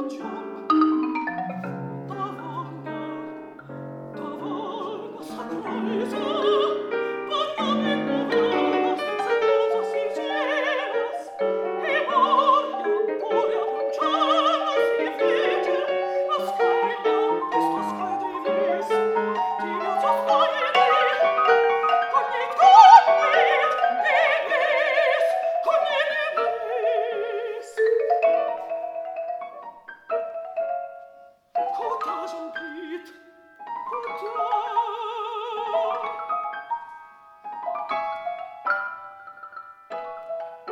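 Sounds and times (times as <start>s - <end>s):
alto voice singing: 0.0s - 29.0s, 31.6s - 36.5s
marimba: 0.0s - 35.0s, 35.6s - 40.7s
piano: 0.0s - 40.7s.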